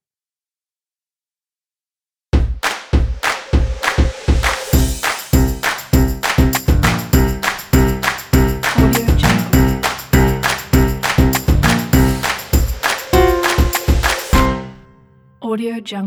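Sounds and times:
hand claps: 2.5s - 14.6s
jazz music: 4.8s - 15.0s.

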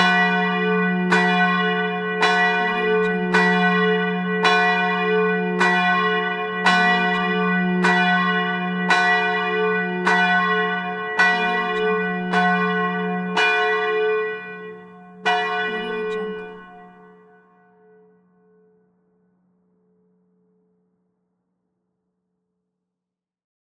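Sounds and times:
medium church bell ringing: 0.0s - 18.8s.

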